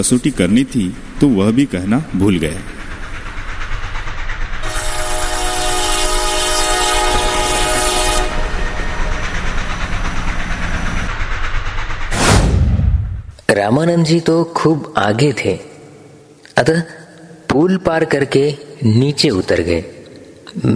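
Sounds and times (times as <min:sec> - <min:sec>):
speech: 0:00.0 - 0:02.8, 0:13.6 - 0:15.7, 0:16.6 - 0:20.7
approaching train: 0:00.0 - 0:16.4
train horn: 0:04.6 - 0:09.2.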